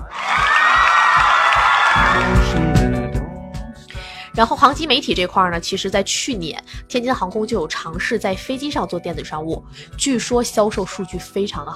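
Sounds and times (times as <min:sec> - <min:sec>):
audience applause and cheering: 0:00.0 - 0:03.0
speech: 0:04.4 - 0:11.7.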